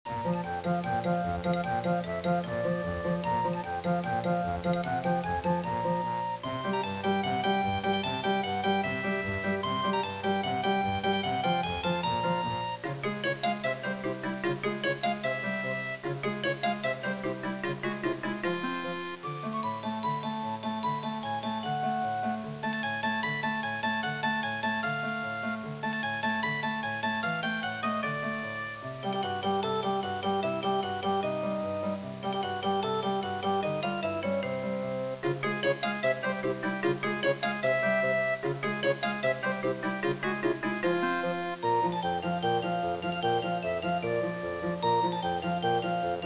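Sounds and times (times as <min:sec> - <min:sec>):
circus tune: 0:00.1 - 0:46.2.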